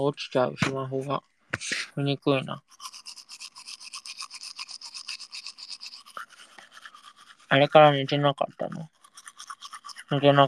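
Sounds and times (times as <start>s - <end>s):
speech: 0.0s - 3.0s, 7.5s - 9.0s, 10.1s - 10.4s
teeth brushing with a toothbrush: 2.6s - 10.4s.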